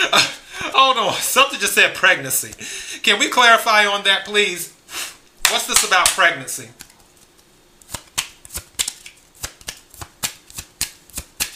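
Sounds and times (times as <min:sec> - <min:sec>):
speech: 0:00.0 - 0:04.8, 0:05.5 - 0:06.8
tarot cards shuffled by hand: 0:05.4 - 0:11.5.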